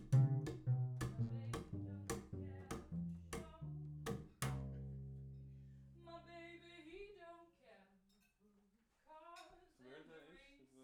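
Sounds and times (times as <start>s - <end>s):
bass recorded through a microphone: 0.0s - 6.5s.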